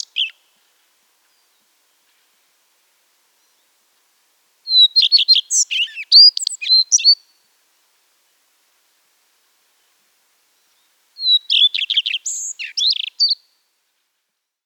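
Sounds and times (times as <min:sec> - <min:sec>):
common redstart Phoenicurus phoenicurus singing: 0:00.0 - 0:00.5, 0:04.7 - 0:07.4, 0:10.6 - 0:13.6.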